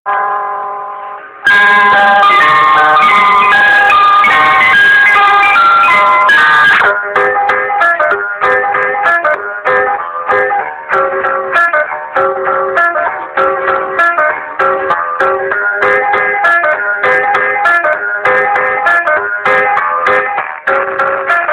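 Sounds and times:
ice cream cart: 0.1s - 21.5s.

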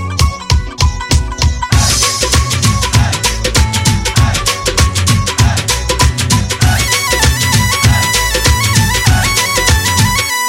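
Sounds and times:
dhol drum: 0.2s - 10.3s.

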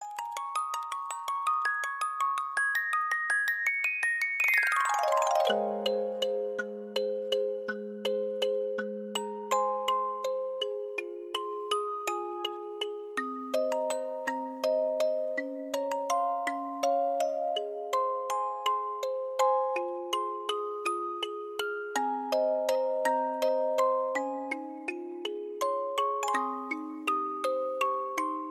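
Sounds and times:
music box: 0.0s - 28.4s.

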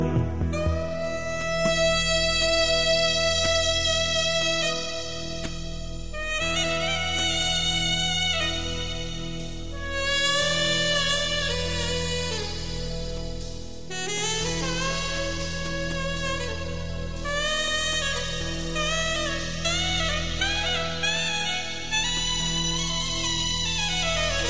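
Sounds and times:
saxophone duet: 0.0s - 24.4s.

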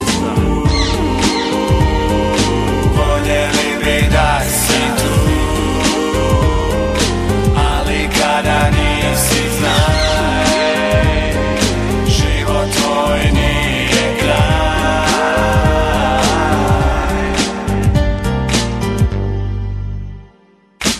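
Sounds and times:
hip hop music: 0.0s - 20.0s, 20.8s - 20.9s.

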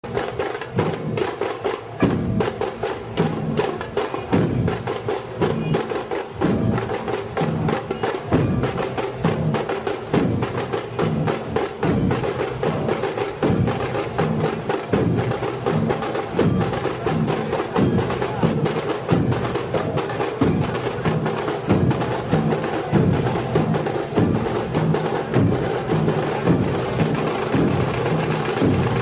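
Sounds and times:
dhol tasha drumming: 0.0s - 29.0s.

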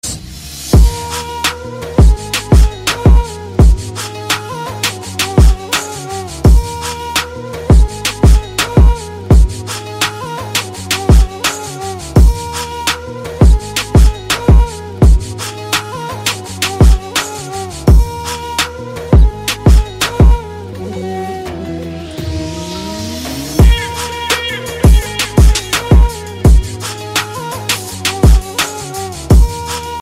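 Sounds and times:
Turkish saz playing: 0.8s - 29.9s.

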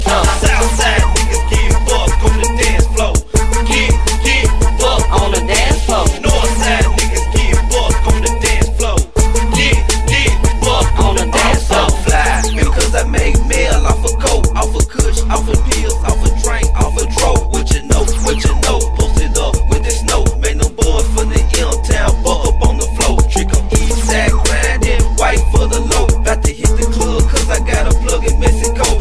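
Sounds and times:
crunk music: 0.0s - 29.0s.

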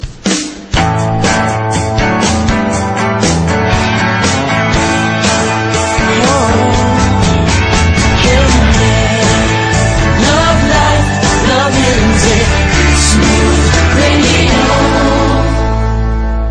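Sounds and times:
smooth music: 0.0s - 16.4s.

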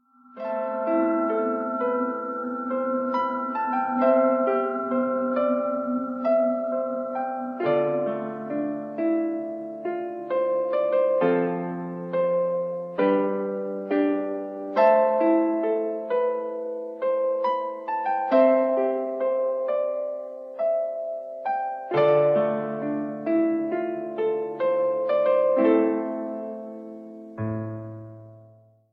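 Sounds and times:
piano song: 0.0s - 28.9s.

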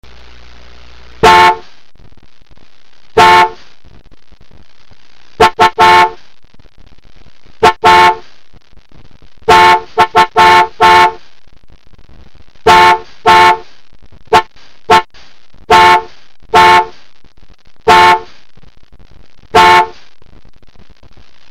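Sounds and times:
car horn: 1.2s - 1.7s, 3.2s - 3.6s, 5.4s - 6.2s, 7.6s - 8.3s, 9.5s - 11.2s, 12.6s - 13.7s, 14.3s - 15.1s, 15.7s - 17.0s, 17.9s - 18.3s, 19.5s - 20.0s.

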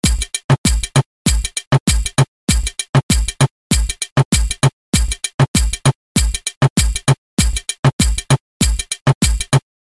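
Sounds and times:
reggaeton music: 0.0s - 9.8s.

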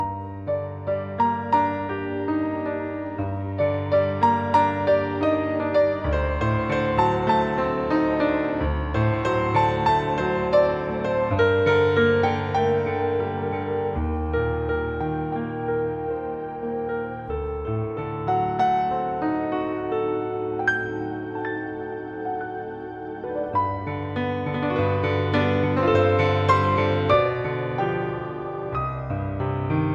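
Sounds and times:
romantic piano music: 0.0s - 29.9s.

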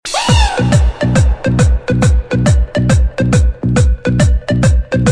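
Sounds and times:
electro hymn: 0.0s - 5.0s.

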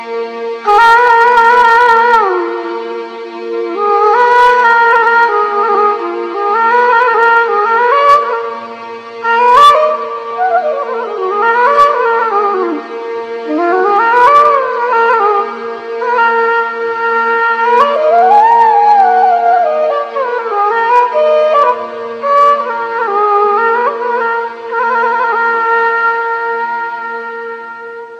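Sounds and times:
Arabic flute playing: 0.7s - 28.1s.

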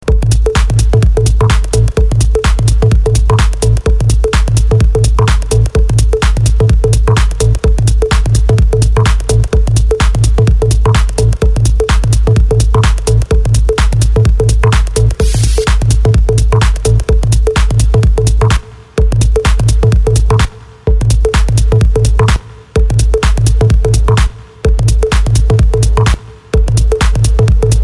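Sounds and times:
stereo bass: 0.0s - 27.8s.

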